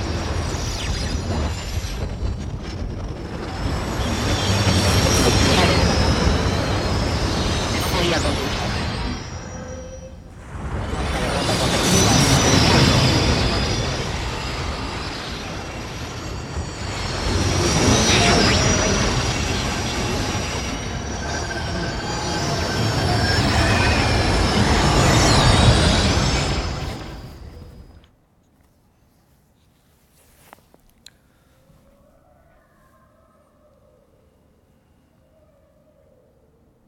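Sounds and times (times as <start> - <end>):
shortwave radio signals converted to sound: 0.0 - 28.0.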